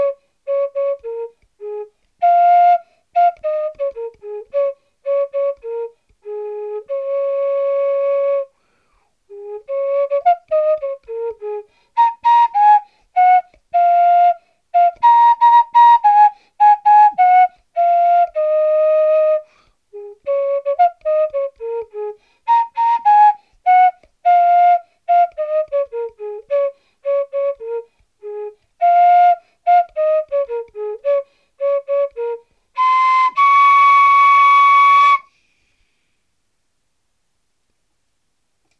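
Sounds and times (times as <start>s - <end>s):
flute: 0.0s - 35.6s.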